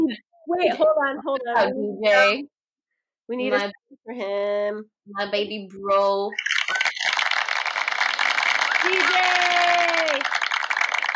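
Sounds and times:
speech: 0.1 - 2.5, 3.3 - 6.6, 8.8 - 9.5
many hands clapping: 6.4 - 11.1.

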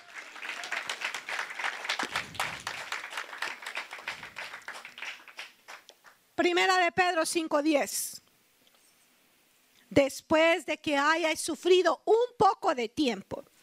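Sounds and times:
audience applause: 0.0 - 6.2
speech: 6.4 - 8.1, 10.0 - 13.4.

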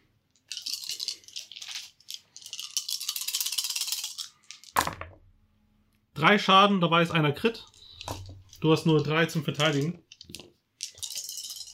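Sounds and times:
several dice rattling and clattering: 0.4 - 5.1, 8.0 - 11.7
speech: 6.2 - 7.7, 8.6 - 10.0.

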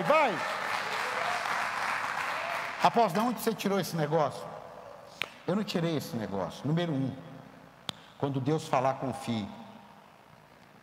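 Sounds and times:
audience applauding: 0.0 - 3.1
speech: 0.1 - 0.6, 2.8 - 4.6, 5.5 - 7.3, 8.2 - 9.6.

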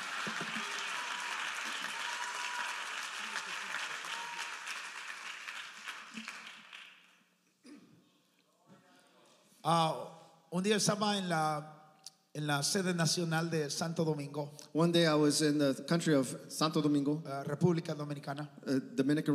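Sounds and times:
church congregation applauding the Lord Jesus: 0.0 - 7.3
speech: 9.6 - 11.8, 12.4 - 19.3.

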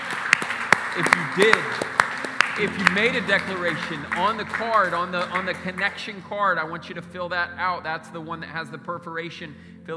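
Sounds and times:
audience applause: 0.0 - 6.1
speech: 1.0 - 1.9, 2.6 - 9.9.

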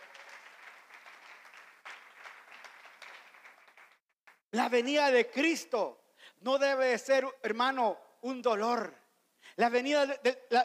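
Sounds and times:
audience clapping: 0.0 - 4.4
speech: 4.5 - 10.6.

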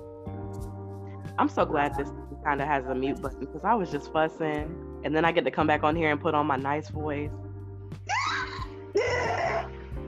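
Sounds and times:
speech: 1.4 - 7.4
person screaming: 8.1 - 9.7.

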